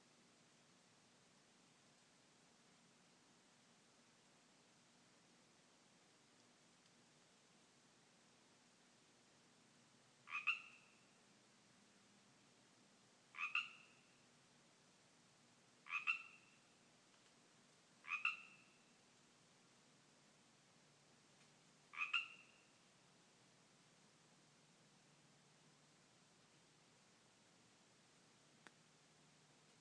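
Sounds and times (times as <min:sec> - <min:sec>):
Pacific tree frogs calling in a yard: 0:10.2 - 0:11.2, 0:13.3 - 0:14.2, 0:15.8 - 0:16.8, 0:18.0 - 0:19.0, 0:21.9 - 0:22.8.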